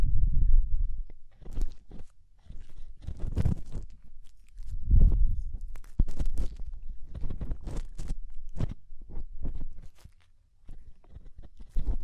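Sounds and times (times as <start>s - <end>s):
low rumbling: 0.0s - 1.1s, 4.8s - 5.6s
deep ear cleaning crackling scratches and clicks: 1.0s - 12.0s.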